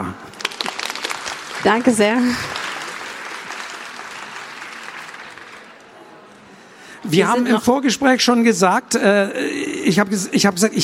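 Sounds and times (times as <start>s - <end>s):
audience applause: 0.3s - 6.2s
speech: 1.6s - 2.5s, 7.1s - 10.8s.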